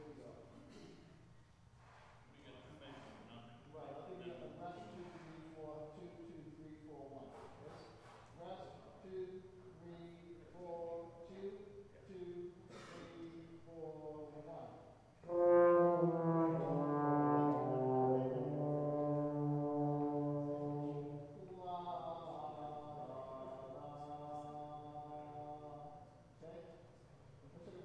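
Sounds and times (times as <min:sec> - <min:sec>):
brass instruments: 0:15.2 - 0:21.5.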